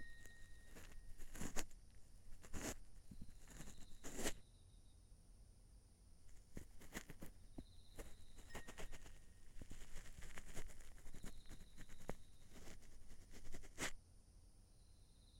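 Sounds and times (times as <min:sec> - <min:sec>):
ear cleaning ASMR in the left ear: 0:00.2 - 0:04.4, 0:06.3 - 0:14.0.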